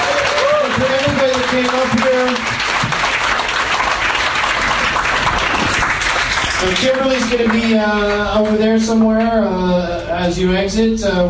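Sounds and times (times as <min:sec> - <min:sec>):
crowd applause: 0:00.0 - 0:08.6
speech: 0:01.5 - 0:02.8, 0:06.6 - 0:11.2.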